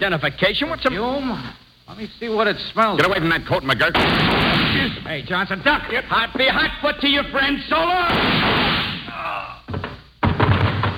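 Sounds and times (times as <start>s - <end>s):
speech: 0.0s - 8.7s
steady hiss: 0.0s - 10.2s
gunshots fired through a transom: 3.9s - 5.0s, 8.1s - 9.0s.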